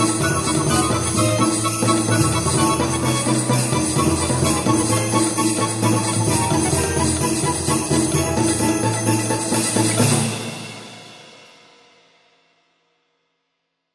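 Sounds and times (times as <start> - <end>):
Greek dance theater music: 0.0 - 10.9.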